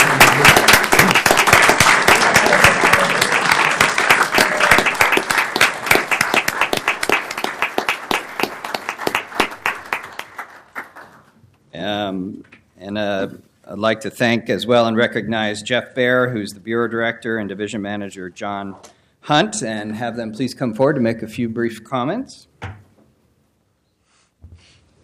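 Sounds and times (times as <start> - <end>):
crowd applauding for honorees: 0.0 - 11.3
speech: 13.8 - 22.8.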